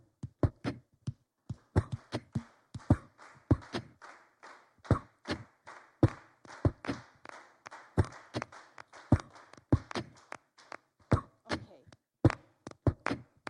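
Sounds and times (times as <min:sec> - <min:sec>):
audience clapping along: 0:01.6 - 0:11.6.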